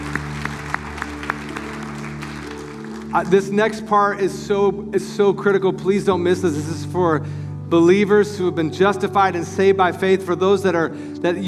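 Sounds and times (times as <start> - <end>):
church audience clapping: 0.0 - 4.2
sustained low tonal drone: 0.0 - 11.4
speech: 3.1 - 11.4.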